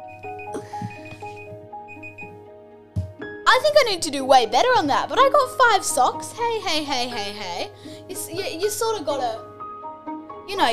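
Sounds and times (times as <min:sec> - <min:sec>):
timer alarm during a sock-putting game: 0:00.0 - 0:02.4
speech: 0:03.6 - 0:09.5, 0:10.5 - 0:10.7.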